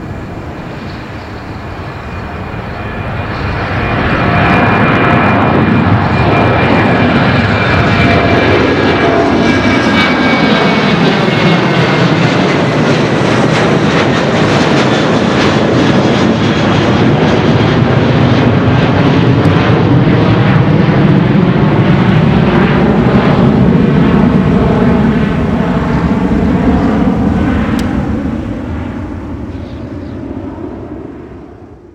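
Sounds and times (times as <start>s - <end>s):
twin jet aircraft: 0.0s - 31.9s.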